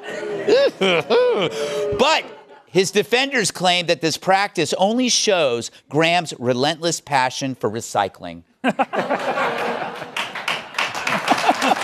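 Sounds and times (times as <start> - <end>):
laughter: 0.0 - 2.7, 8.6 - 11.8
speech: 0.5 - 9.7
audience applause: 9.1 - 11.8.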